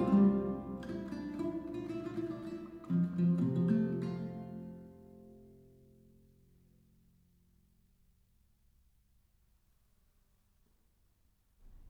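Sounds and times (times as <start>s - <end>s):
renaissance lute: 0.0s - 6.1s.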